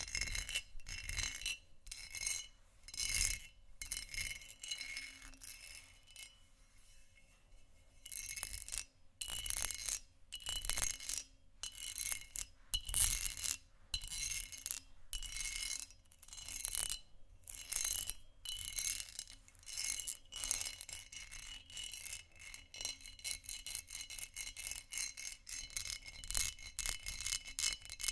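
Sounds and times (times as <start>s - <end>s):
textured glass scratched and tapped: 0.0s - 28.1s.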